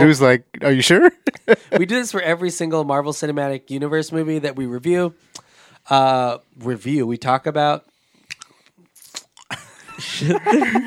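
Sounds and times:
speech: 0.0 - 7.9, 10.0 - 10.8
laughter: 0.9 - 1.9, 9.5 - 10.8
crunching a cough drop: 8.3 - 9.6.

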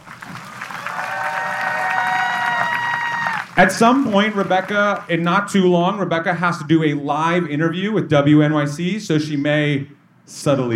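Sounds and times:
audience applause: 0.0 - 5.3
speech: 3.6 - 10.7.

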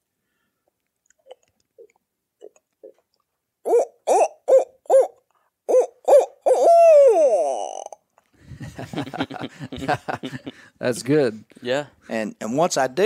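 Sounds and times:
person imitating owl hoots: 3.6 - 8.0
laughter: 8.4 - 10.7
speech: 9.2 - 13.0.

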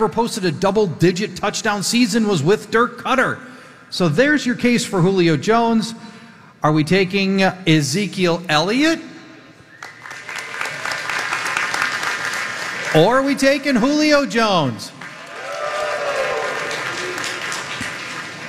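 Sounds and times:
speech: 0.0 - 9.1, 12.9 - 15.0
large crowd applauding and cheering: 9.7 - 13.3, 15.0 - 18.4.

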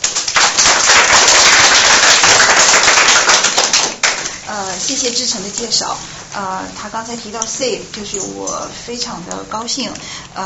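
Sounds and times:
audience applause: 0.0 - 4.4
speech: 4.9 - 10.4.

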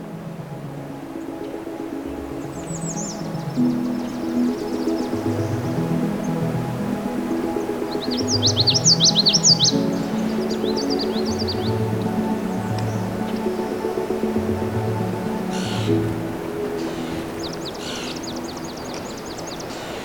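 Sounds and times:
migrant warblers and other songbirds singing along Crane River: 0.0 - 20.0.

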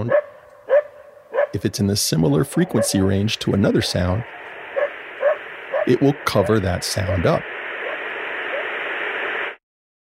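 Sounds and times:
speech: 1.5 - 4.4, 5.9 - 7.5
white noise hiss: 1.6 - 9.6.

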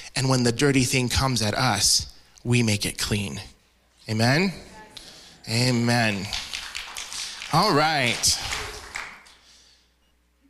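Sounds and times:
speech: 0.2 - 3.5, 4.1 - 4.7, 5.5 - 6.4, 7.5 - 8.5
audience clapping: 5.6 - 9.5.

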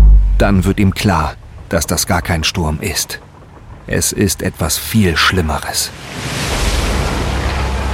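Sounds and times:
speech: 0.4 - 3.3, 3.9 - 6.6
breaking waves crashing: 1.0 - 7.9.

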